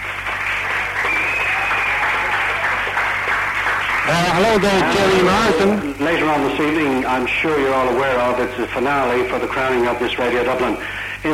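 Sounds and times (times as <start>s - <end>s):
audience applause: 0.0s - 8.4s
speech: 4.1s - 11.3s.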